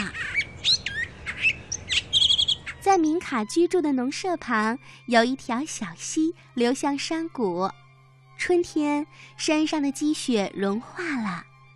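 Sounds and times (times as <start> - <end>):
birds singing: 0.0 - 2.9
speech: 2.9 - 7.8, 8.4 - 11.5.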